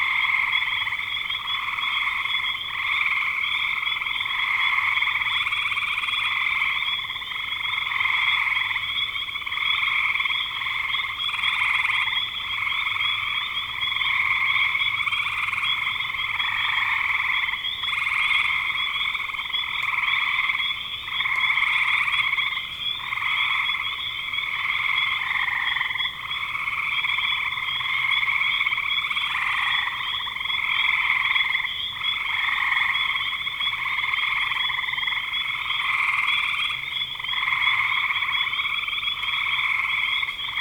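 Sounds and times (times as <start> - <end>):
frog chorus: 0.0 - 40.5.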